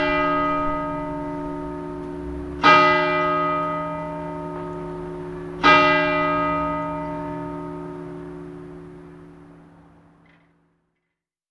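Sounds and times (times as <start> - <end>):
bells ringing: 0.0 - 8.1.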